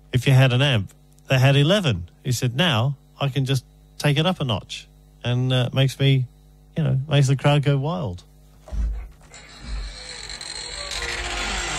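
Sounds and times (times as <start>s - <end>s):
speech: 0.1s - 8.3s
creaky chair creaking: 8.7s - 11.7s.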